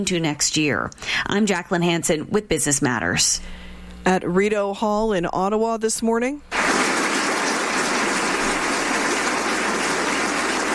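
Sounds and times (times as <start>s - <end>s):
speech: 0.0s - 6.6s
applause for Michael J. Fox at Order of Canada ceremony, Rideau Hall, Ottawa: 6.6s - 10.7s.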